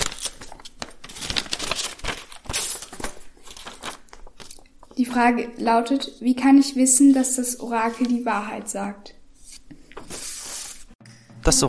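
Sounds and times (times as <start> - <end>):
paper envelope being fetched and handled: 0.0 - 5.0, 7.1 - 8.7, 9.4 - 11.0
speech: 5.0 - 9.2.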